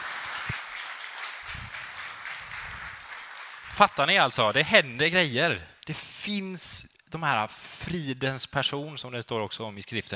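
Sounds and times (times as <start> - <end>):
audience applause: 0.0 - 4.4
speech: 3.8 - 10.1.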